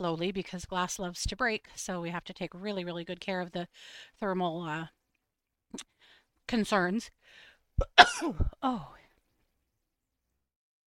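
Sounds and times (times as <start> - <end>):
speech: 0.0 - 5.0, 5.7 - 5.9, 6.5 - 9.0
person sneezing: 7.8 - 8.6.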